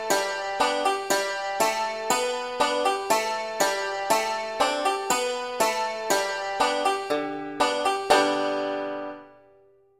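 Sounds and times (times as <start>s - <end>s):
five-string banjo solo with melody: 0.0s - 9.7s.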